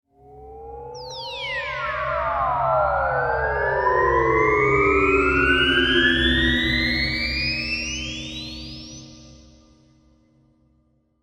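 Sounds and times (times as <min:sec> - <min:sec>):
UFO ascending sci-fi synth stab: 0:00.2 - 0:08.1.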